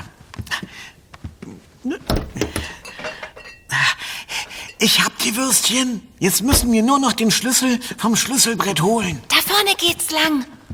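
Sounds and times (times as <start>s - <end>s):
metal pots and pans clattering: 2.1s - 5.0s
speech: 4.8s - 10.6s.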